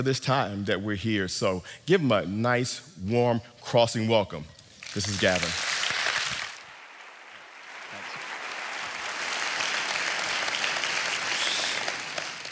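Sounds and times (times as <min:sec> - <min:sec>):
speech: 0:00.0 - 0:05.7
audience applause: 0:04.8 - 0:12.5.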